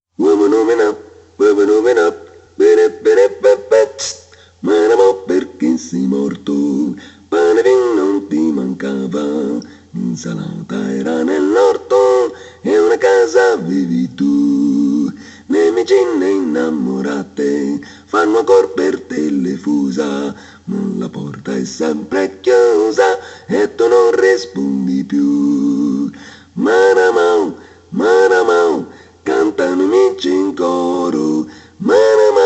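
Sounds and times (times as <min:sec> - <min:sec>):
multiphonic singing: 0:00.2 - 0:32.4.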